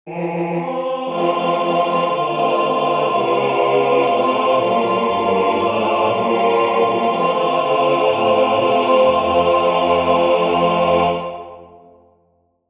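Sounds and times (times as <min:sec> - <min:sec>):
barbershop quartet singing all parts: 0:00.1 - 0:11.3.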